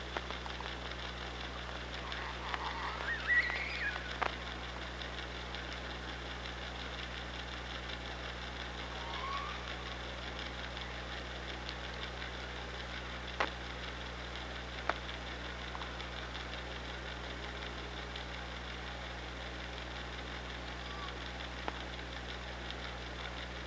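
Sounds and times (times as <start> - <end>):
continuous hiss: 0.0 - 23.6
Killer whale pulsed call: 2.0 - 4.3, 8.8 - 10.0, 20.8 - 21.2.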